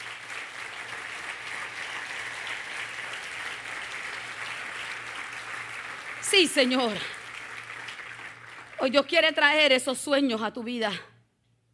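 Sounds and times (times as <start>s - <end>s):
audience applause: 0.0s - 9.3s
speech: 6.3s - 7.2s, 8.8s - 11.1s.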